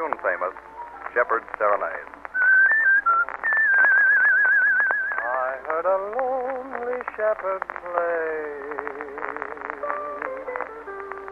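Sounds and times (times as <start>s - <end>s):
speech: 0.1s - 2.2s, 5.6s - 9.5s
person whistling a melody: 2.4s - 5.3s.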